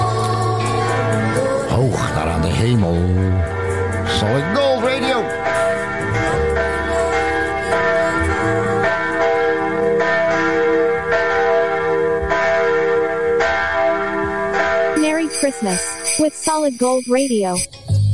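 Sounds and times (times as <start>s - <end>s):
church bells ringing: 0.0s - 17.7s
speech: 2.6s - 6.0s, 15.6s - 17.8s.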